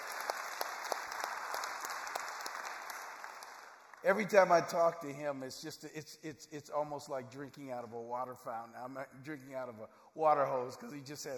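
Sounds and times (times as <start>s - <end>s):
audience clapping: 0.0s - 4.7s
speech: 4.0s - 11.3s.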